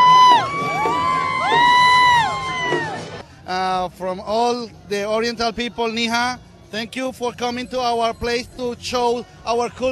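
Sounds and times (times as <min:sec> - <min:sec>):
parade crowd cheering: 0:00.0 - 0:03.2
speech: 0:03.9 - 0:09.9.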